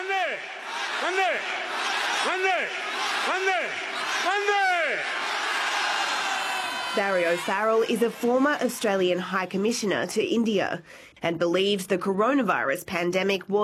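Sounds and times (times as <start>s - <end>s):
rally crowd chanting: 0.0s - 8.7s
speech: 6.9s - 13.6s.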